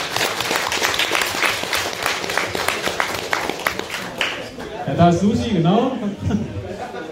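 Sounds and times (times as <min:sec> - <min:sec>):
audience applause: 0:00.0 - 0:04.6
speech: 0:04.9 - 0:06.6
laughter: 0:06.0 - 0:07.1.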